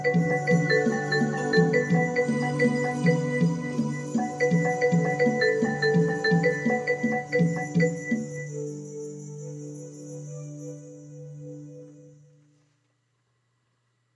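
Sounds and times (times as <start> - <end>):
tribal music: 0.0 - 8.8.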